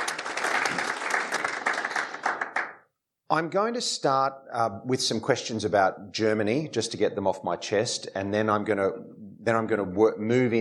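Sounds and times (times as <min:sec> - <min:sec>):
audience applause welcoming guests onto a panel at a foreign-affairs discussion event: 0:00.0 - 0:02.8
speech: 0:03.3 - 0:10.5.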